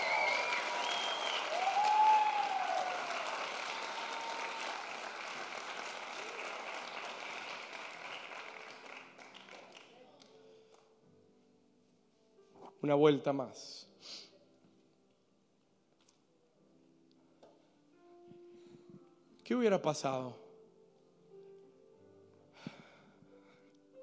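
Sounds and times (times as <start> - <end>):
audience applause: 0.0 - 10.0
speech: 12.8 - 13.8, 19.5 - 20.4.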